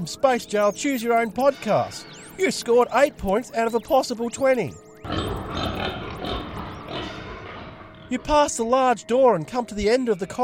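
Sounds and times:
speech: 0:00.0 - 0:05.4, 0:08.1 - 0:10.4
pig snorting and grunting: 0:05.0 - 0:08.4.

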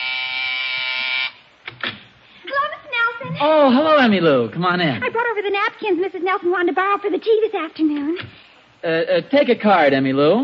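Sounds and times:
harsh electric doorbell buzzer: 0:00.0 - 0:01.4
speech: 0:03.4 - 0:10.4.

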